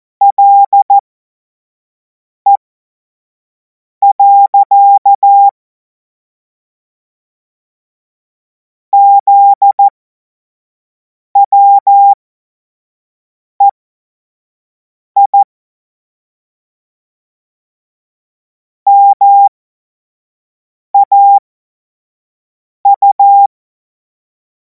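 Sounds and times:
Morse code course tones: 0:00.2 - 0:01.0, 0:04.0 - 0:05.5, 0:09.0 - 0:09.9, 0:11.4 - 0:12.2, 0:15.2 - 0:15.4, 0:18.9 - 0:19.5, 0:21.0 - 0:21.4, 0:22.9 - 0:23.5.

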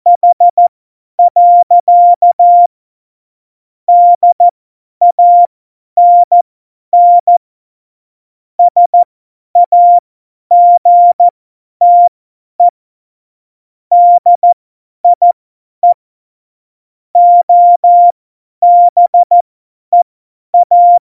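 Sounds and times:
CW morse code beeps: 0:00.1 - 0:00.6, 0:01.2 - 0:02.7, 0:03.9 - 0:04.5, 0:05.1 - 0:06.4, 0:07.0 - 0:07.4, 0:08.6 - 0:12.7, 0:13.9 - 0:16.0, 0:17.2 - 0:20.0, 0:20.6 - 0:21.0.

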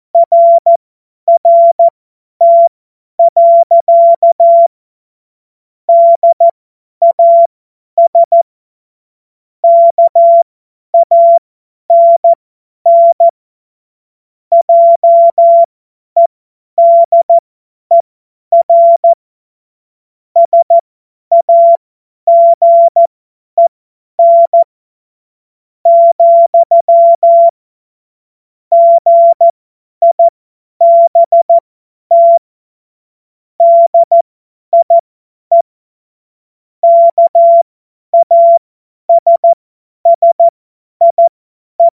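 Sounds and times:
CW Morse code beeps: 0:00.2 - 0:04.7, 0:05.9 - 0:08.4, 0:09.6 - 0:13.3, 0:14.5 - 0:15.7, 0:16.8 - 0:18.0, 0:18.6 - 0:19.2, 0:20.4 - 0:24.7, 0:25.9 - 0:27.6, 0:28.7 - 0:32.4, 0:33.6 - 0:35.6, 0:36.8 - 0:41.9.

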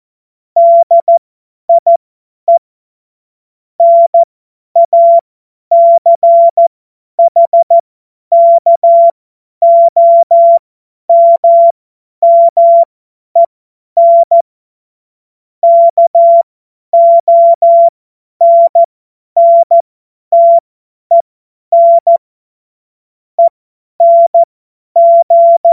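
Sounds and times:
CW Morse code beeps: 0:00.6 - 0:02.6, 0:03.8 - 0:06.6, 0:07.2 - 0:14.4, 0:15.6 - 0:16.4, 0:17.0 - 0:22.2, 0:23.4 - 0:25.7.

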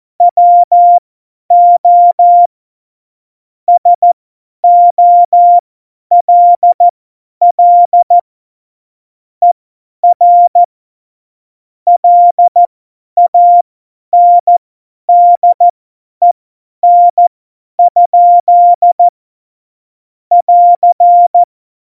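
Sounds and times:
Morse code CW keying for a Morse course: 0:00.2 - 0:02.5, 0:03.7 - 0:06.8, 0:07.5 - 0:08.2, 0:10.0 - 0:10.7, 0:11.9 - 0:19.1, 0:20.3 - 0:21.5.

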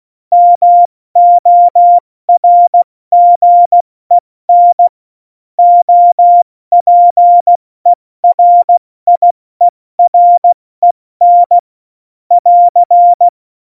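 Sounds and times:
CW Morse code beeps: 0:00.4 - 0:04.9, 0:05.6 - 0:07.6, 0:08.2 - 0:09.3, 0:10.0 - 0:10.6, 0:11.2 - 0:11.6, 0:12.3 - 0:13.3.

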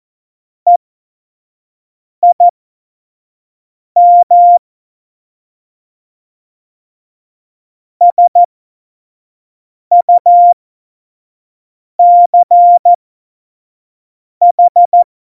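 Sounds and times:
morse code beeps: 0:02.2 - 0:02.5, 0:04.0 - 0:04.6, 0:08.0 - 0:08.5, 0:09.9 - 0:10.6, 0:12.0 - 0:13.0, 0:14.4 - 0:15.0.

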